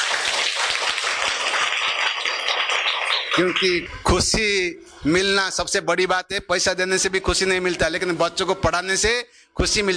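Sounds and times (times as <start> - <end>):
schoolchildren clapping for their teacher: 0.0 - 4.1
speech: 3.4 - 9.9.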